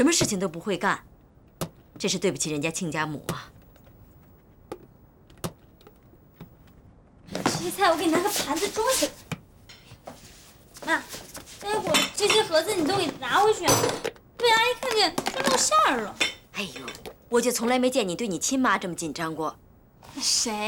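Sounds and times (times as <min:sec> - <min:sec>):
animated conversation: 0:00.0 - 0:20.6
dishes and cutlery clinking as a plate is fetched: 0:11.8 - 0:14.2.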